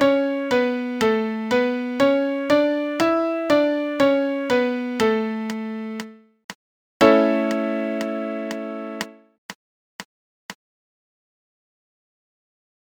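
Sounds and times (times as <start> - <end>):
five finger triad exercise: 0.0 - 6.2, 7.0 - 9.2.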